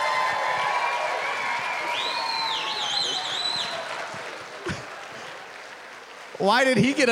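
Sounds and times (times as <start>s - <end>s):
audience applause and cheering: 0.0s - 7.1s
shrill rising whistles: 0.8s - 3.9s
speech: 6.4s - 7.1s.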